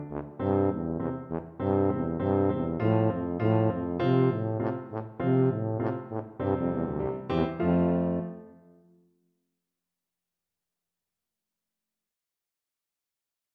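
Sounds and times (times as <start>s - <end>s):
tuba playing a march: 0.0s - 8.6s.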